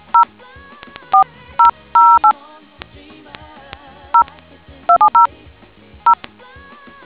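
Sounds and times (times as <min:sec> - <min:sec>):
DTMF tones: 0:00.0 - 0:00.3, 0:01.0 - 0:02.4, 0:04.2 - 0:05.3.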